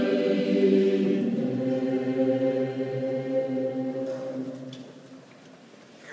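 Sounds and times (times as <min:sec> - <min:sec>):
choral chant: 0:00.0 - 0:05.3.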